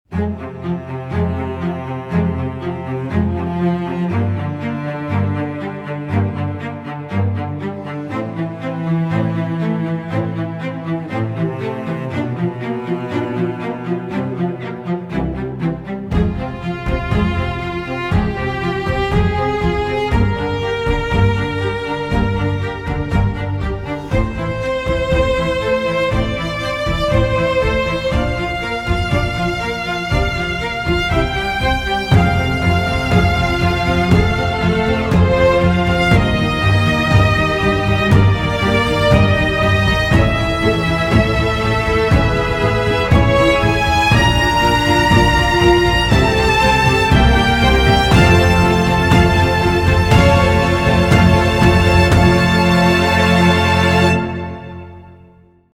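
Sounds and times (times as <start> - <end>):
strings: 0.0 - 55.6.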